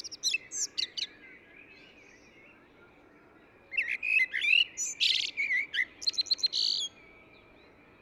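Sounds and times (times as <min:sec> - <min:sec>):
Eurasian blackbird singing: 0:00.0 - 0:08.0.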